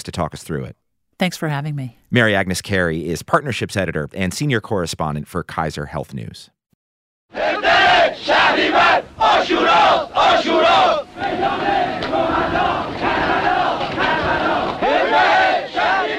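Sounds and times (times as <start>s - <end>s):
speech: 0.0s - 6.6s, 7.3s - 12.7s
large crowd chanting during the 1979 student uprising in Tehran: 7.3s - 16.1s.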